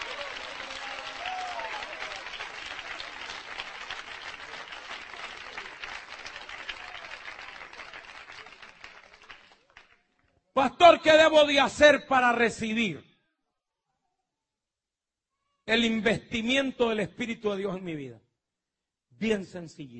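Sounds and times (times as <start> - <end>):
church congregation crowd noise: 0.0 - 9.9
church congregation applause for the mayor of Alejandría: 0.0 - 10.4
speech: 10.6 - 13.1, 15.7 - 18.2, 19.2 - 19.9.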